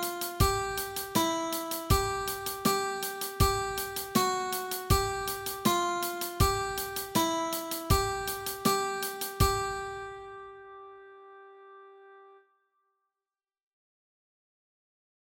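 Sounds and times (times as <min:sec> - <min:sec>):
guitar exercise: 0:00.0 - 0:12.2.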